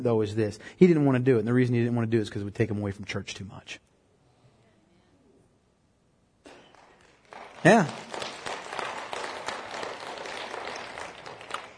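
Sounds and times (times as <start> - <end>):
speech: 0.0 - 3.9, 7.6 - 8.2
audience applause: 6.5 - 11.7.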